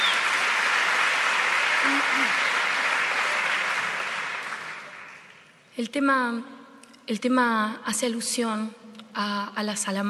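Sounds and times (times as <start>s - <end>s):
audience applause: 0.0s - 5.5s
speech: 5.8s - 10.0s.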